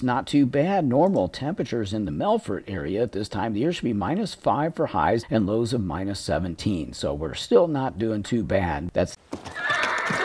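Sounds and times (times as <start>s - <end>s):
speech: 0.0s - 10.2s
horse neighing: 9.4s - 10.2s.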